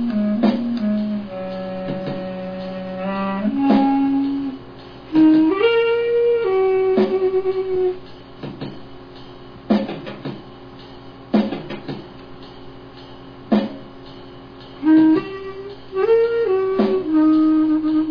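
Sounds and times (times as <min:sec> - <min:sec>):
blowing: 0:00.0 - 0:08.0, 0:14.8 - 0:18.1.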